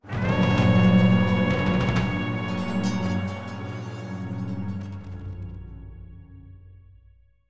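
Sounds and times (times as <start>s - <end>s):
aggressive hunter fanfare: 0.0s - 4.5s.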